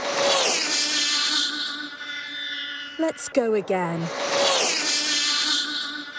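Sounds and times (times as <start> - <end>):
high-speed remote control car speeding past: 0.0 - 2.6, 4.0 - 6.1
speech: 3.0 - 4.4.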